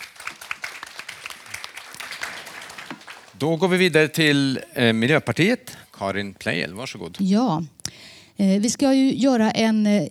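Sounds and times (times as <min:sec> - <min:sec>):
audience applause: 0:00.0 - 0:04.3
speech: 0:03.4 - 0:07.8, 0:08.4 - 0:10.0.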